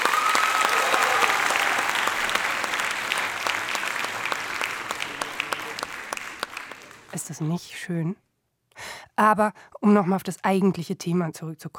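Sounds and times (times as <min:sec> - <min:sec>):
applause: 0:00.0 - 0:07.5
speech: 0:07.3 - 0:08.2, 0:09.2 - 0:11.7.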